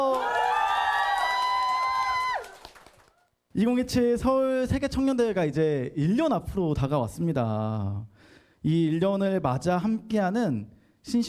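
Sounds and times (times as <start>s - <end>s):
audience cheering and shouting: 0.0s - 2.5s
speech: 3.6s - 11.2s.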